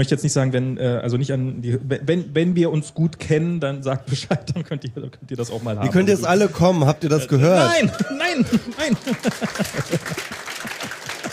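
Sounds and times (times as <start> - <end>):
speech: 0.0 - 10.4
laughter: 7.2 - 11.3
applause: 8.3 - 11.3.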